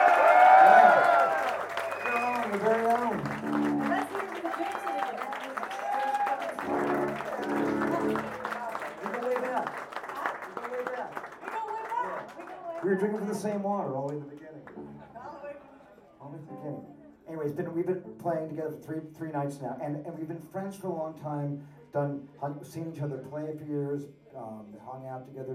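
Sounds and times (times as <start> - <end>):
whoops, shouts and cheering voices: 0.0 - 2.6, 4.5 - 6.6
audience applause after a live set: 0.0 - 15.0
speech: 13.0 - 14.4, 17.5 - 25.5.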